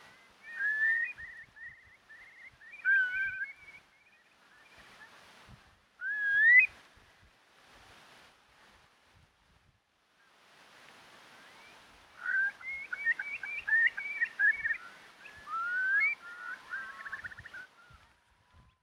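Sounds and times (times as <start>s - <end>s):
Numenius arquata arquata calling: 0.0s - 5.3s, 6.0s - 6.9s, 11.4s - 18.8s.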